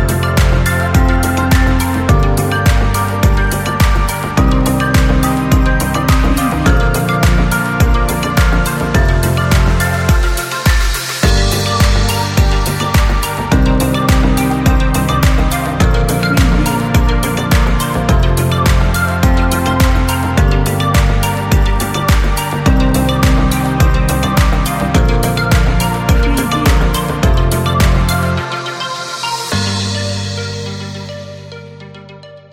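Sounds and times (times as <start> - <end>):
electronic ambience: 0.0 - 31.4.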